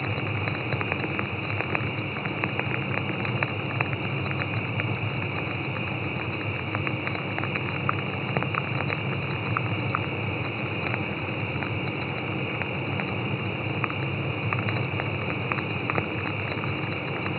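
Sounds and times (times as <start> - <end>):
campfire: 0.0 - 17.3.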